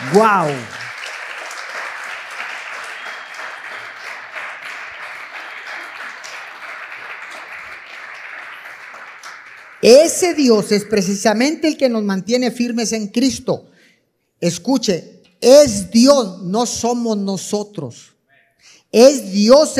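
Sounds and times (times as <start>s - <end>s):
audience clapping: 0.0s - 11.3s
speech: 0.1s - 0.8s, 9.8s - 13.7s, 14.4s - 19.7s.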